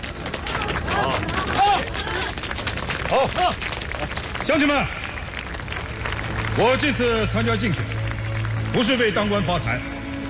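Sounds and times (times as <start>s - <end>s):
applause: 0.0s - 10.2s
speech: 3.1s - 3.8s, 4.5s - 5.0s, 6.6s - 8.0s, 8.7s - 9.9s.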